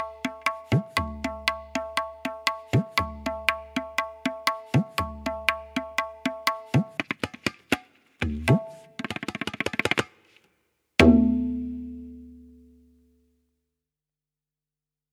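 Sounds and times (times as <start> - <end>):
tabla solo: 0.0 - 10.3, 11.0 - 12.8.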